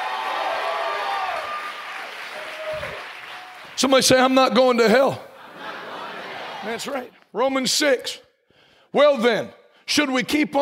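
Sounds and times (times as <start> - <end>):
audience clapping: 0.0 - 4.4
speech: 3.8 - 5.3, 6.6 - 8.2, 8.9 - 10.6
laughter: 5.3 - 7.0.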